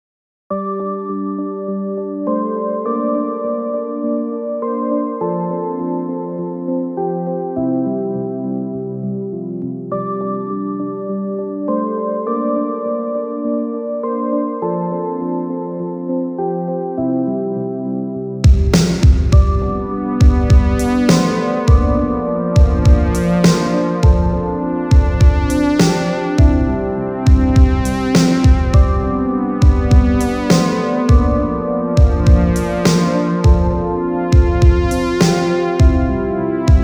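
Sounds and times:
Roland Juno-106 analog synthesizer: 0.5s - 36.8s.

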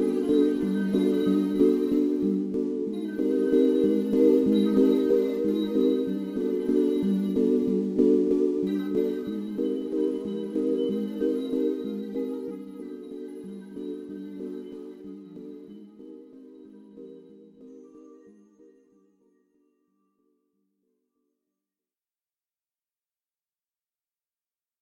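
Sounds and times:
strolling music: 0.0s - 18.2s.

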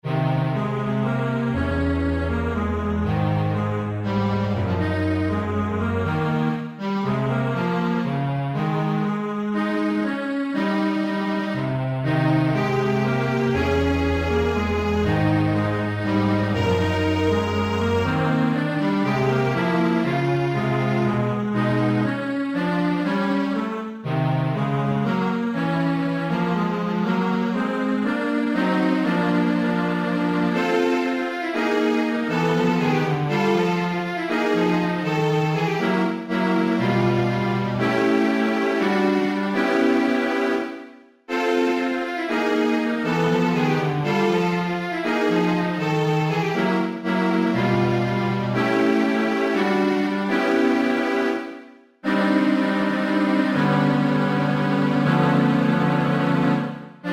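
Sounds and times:
strings: 0.0s - 57.1s.

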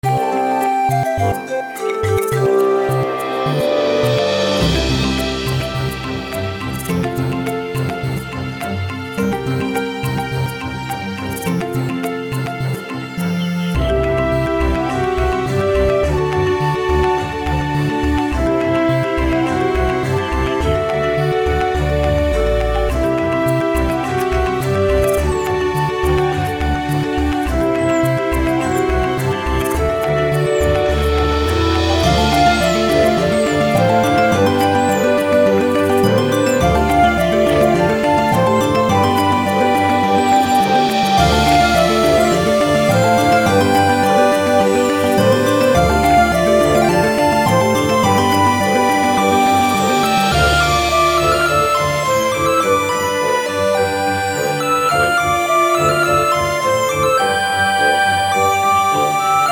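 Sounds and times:
orchestral chiptune music: 0.0s - 59.5s.

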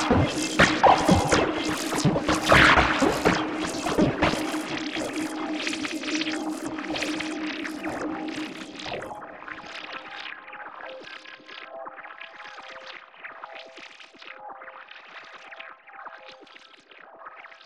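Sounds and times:
pocket operator and Renoise electronic music: 0.0s - 11.3s.

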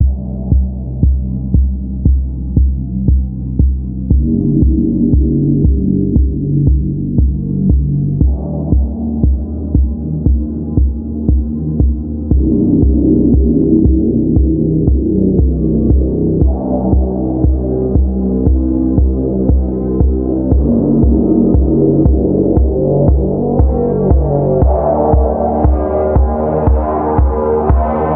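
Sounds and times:
Casio SK-1 and Yamaha VSS-30 keyboards: 0.0s - 28.1s.

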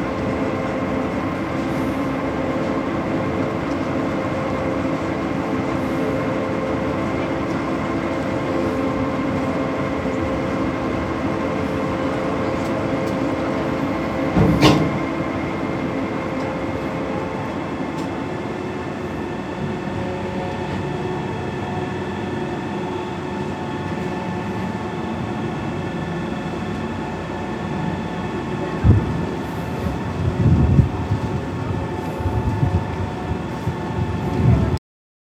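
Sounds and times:
ferry engine noise: 0.0s - 34.8s.

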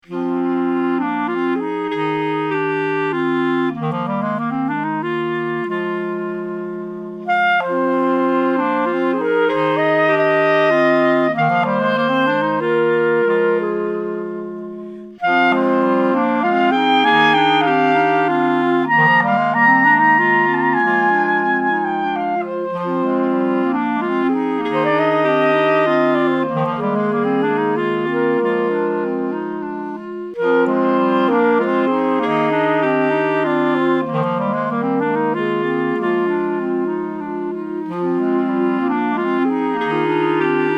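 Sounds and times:
clarinet: 0.0s - 40.7s.

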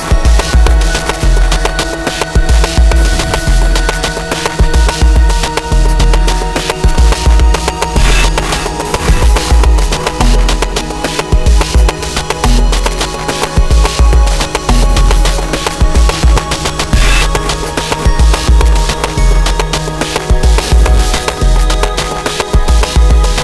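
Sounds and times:
melancholic rhythmic noise: 0.0s - 23.4s.

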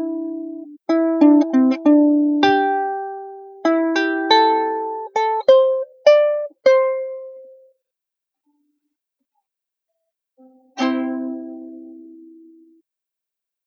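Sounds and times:
ukulele jam: 0.0s - 7.7s, 10.8s - 12.6s.

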